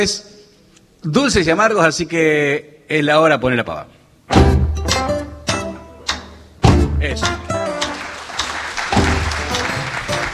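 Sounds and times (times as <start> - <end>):
speech: 0.0 - 0.3, 1.0 - 4.8, 7.0 - 7.4
audience applause: 7.7 - 10.3.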